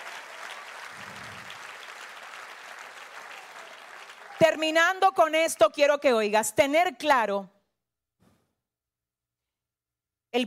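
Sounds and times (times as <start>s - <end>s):
audience applause: 0.0s - 4.7s
speech: 4.4s - 7.6s.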